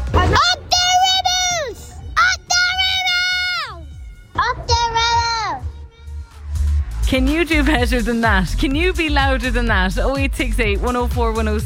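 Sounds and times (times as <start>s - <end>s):
children shouting and cheering: 0.0s - 6.8s
speech: 7.1s - 11.6s.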